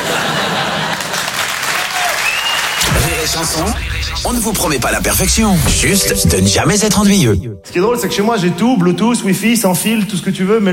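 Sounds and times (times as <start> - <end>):
laughter: 0.0 - 1.5
people applauding: 0.6 - 2.9
speech: 3.3 - 10.7.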